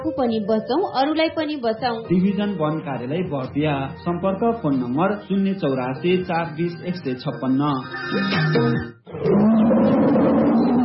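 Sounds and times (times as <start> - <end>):
speech: 0.0 - 9.5
tiger roaring: 9.1 - 10.8.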